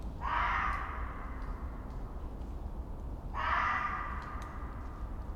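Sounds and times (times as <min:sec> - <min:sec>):
red fox screaming at night in a winter forest: 0:00.2 - 0:02.0, 0:03.3 - 0:05.2.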